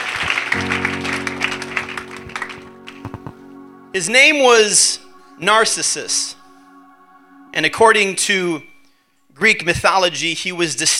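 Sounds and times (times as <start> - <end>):
audience clapping hands: 0.0 - 3.4
speech: 3.9 - 6.4, 7.6 - 8.7, 9.4 - 10.9.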